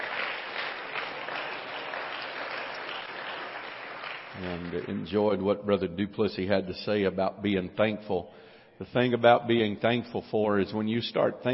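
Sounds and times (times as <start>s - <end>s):
audience clapping: 0.0s - 5.4s
speech: 4.4s - 11.5s.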